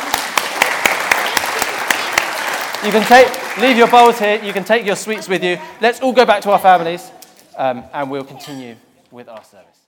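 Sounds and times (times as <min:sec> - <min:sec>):
audience applause for quiz contestants at a church service: 0:00.0 - 0:05.4
speech: 0:02.8 - 0:09.8.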